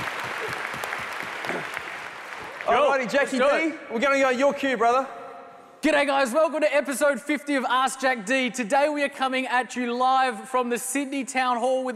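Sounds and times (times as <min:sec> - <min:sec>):
audience applause: 0:00.0 - 0:03.3
speech: 0:02.7 - 0:05.2, 0:05.8 - 0:11.9.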